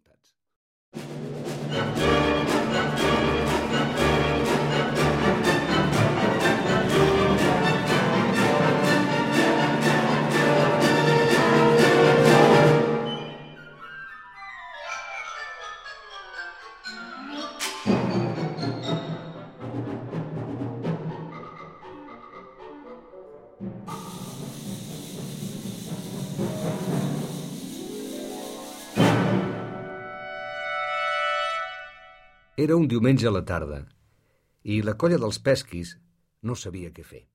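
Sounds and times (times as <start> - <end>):
orchestra: 1.0 - 14.7, 17.6 - 32.7
narrator speaking: 32.6 - 34.0, 34.6 - 37.3.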